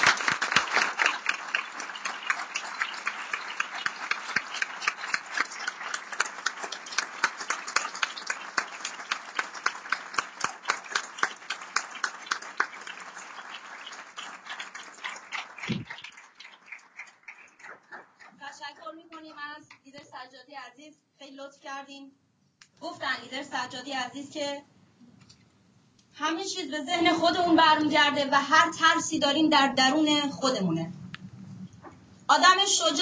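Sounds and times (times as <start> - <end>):
audience applause and clapping: 0.0 - 19.8
speech: 23.2 - 24.7, 26.2 - 30.8, 32.4 - 33.0.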